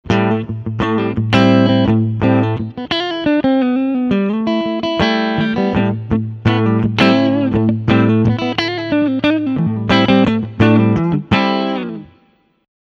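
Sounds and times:
clean electric guitar melody on front humbucker pickup: 0.0 - 12.6.

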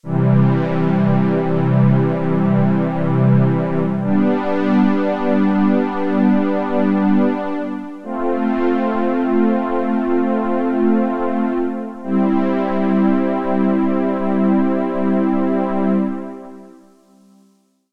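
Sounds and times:
Roland Cloud Juno-106 synthesizer: 0.0 - 17.6.

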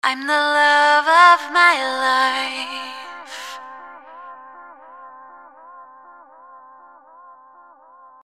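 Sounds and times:
vocals: 0.0 - 5.6
reversed vocal: 0.3 - 5.0.

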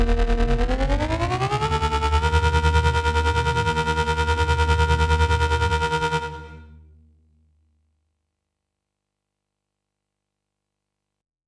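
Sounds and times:
filter check: 0.0 - 6.6.

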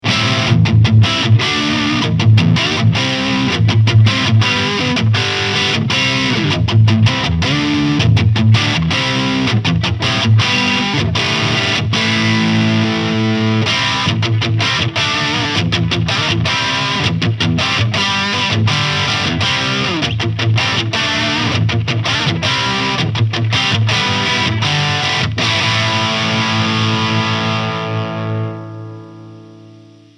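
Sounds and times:
Fender AV II 57 Strat heavy crunch electric guitar: 0.0 - 30.1.

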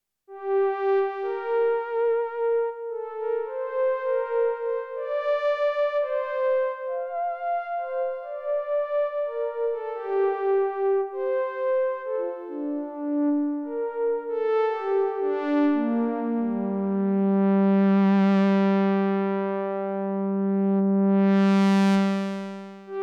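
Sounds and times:
lead melody: 0.4 - 21.4.

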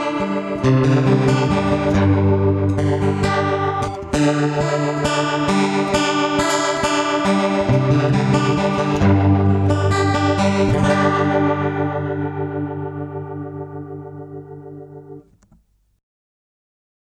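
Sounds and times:
rotary preset organ tone: 0.1 - 15.4.

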